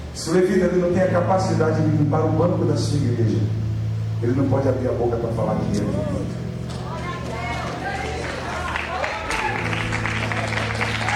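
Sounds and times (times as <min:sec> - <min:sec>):
speech: 0:00.2 - 0:03.6, 0:04.2 - 0:06.4
crowd applauding: 0:06.7 - 0:11.1.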